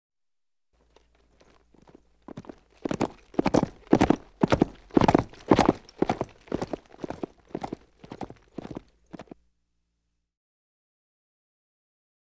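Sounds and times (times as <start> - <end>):
horse hooves cantering: 0.8 - 9.4.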